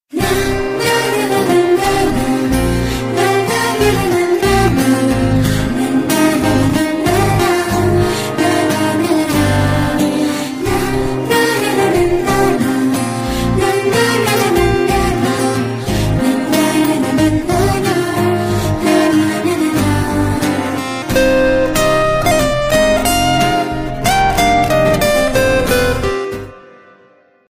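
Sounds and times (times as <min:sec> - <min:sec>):
intro background music: 0:00.1 - 0:27.5.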